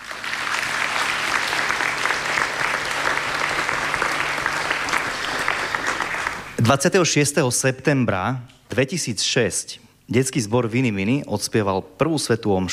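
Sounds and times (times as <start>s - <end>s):
audience applause: 0.0s - 6.6s
speech: 6.7s - 12.7s.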